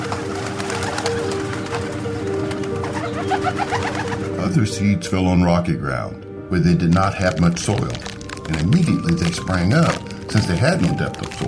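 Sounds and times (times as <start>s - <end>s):
birds cooing: 0.0s - 4.6s
dense chorus of bird chirps: 0.0s - 11.4s
speech: 3.5s - 11.4s.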